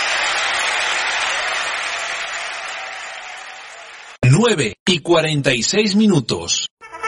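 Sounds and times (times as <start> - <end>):
audience clapping: 0.0 - 4.2
speech: 4.3 - 6.7.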